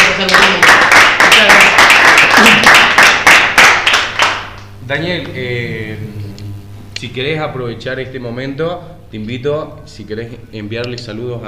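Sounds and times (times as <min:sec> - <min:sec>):
small group hand claps: 0:00.0 - 0:04.7
speech: 0:04.9 - 0:06.2, 0:07.0 - 0:11.4.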